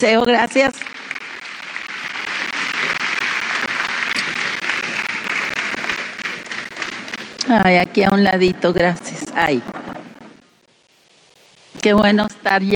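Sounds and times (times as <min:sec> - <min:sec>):
speech: 0:00.0 - 0:00.9, 0:07.5 - 0:10.0, 0:11.8 - 0:12.7
audience applause: 0:00.7 - 0:07.4.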